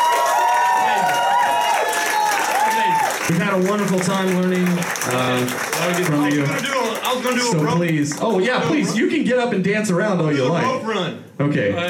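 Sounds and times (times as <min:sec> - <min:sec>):
whooping: 0:00.0 - 0:03.3
audience clapping welcoming a guest: 0:00.0 - 0:08.8
speech: 0:03.3 - 0:11.8.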